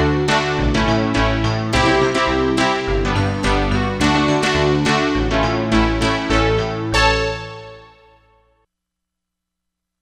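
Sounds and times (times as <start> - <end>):
forte synth on Korg MSC-07S synthesizer: 0.0 - 7.8.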